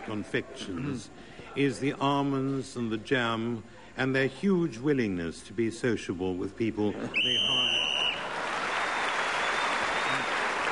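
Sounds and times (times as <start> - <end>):
speech: 0.1 - 8.0
game show whistle blowing: 7.2 - 10.4
crowd applauding: 7.2 - 10.7.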